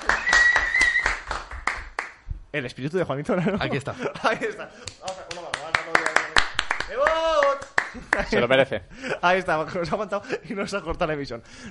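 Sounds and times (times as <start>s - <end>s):
audience ovation applause: 0.0s - 2.1s, 5.0s - 8.3s
speech: 2.5s - 6.0s, 6.9s - 11.6s.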